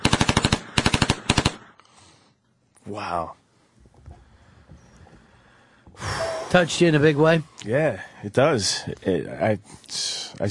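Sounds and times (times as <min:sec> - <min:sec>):
automatic gunfire sound effect: 0:00.0 - 0:01.7
speech: 0:02.9 - 0:03.4, 0:06.0 - 0:10.4.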